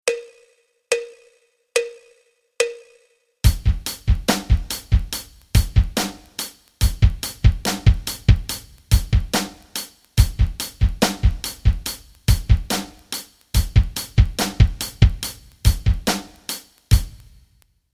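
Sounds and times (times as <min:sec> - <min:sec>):
rock rhythms: 0:03.4 - 0:17.4.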